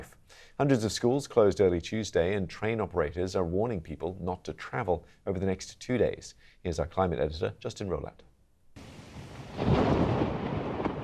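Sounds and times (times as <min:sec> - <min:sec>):
soft rain-like hiss: 0:00.0 - 0:06.9, 0:08.8 - 0:11.0
speech: 0:00.6 - 0:08.3
thunder from overnight storms over southern and western England: 0:08.8 - 0:11.0.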